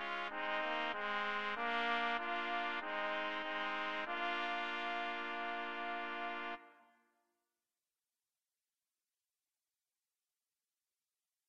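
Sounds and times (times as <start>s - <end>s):
trumpet trio: 0.0s - 6.8s.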